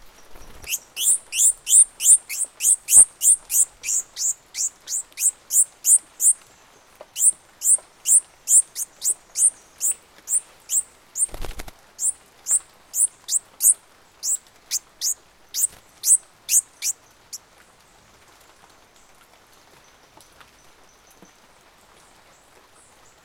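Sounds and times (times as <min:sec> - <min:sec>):
bird chirping: 0:00.2 - 0:17.4.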